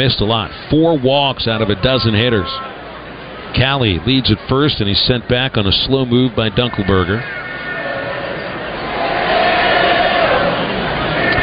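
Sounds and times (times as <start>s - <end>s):
speech: 0.0s - 2.7s, 3.5s - 7.4s
ballpark crowd cheering: 0.9s - 3.1s, 6.4s - 11.4s.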